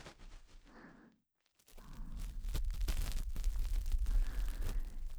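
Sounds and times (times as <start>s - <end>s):
bonten ear pick cleaning the left ear for sleep: 1.7s - 5.1s.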